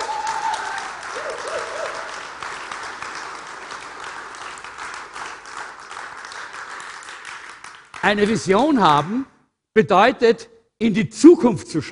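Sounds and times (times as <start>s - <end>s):
audience applause: 0.0s - 9.2s
speech: 8.0s - 11.8s.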